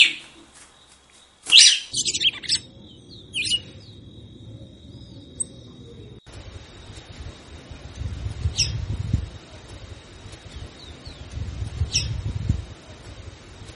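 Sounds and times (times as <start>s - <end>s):
red-cowled cardinal singing chirped notes: 0.0s - 6.2s, 8.4s - 13.0s.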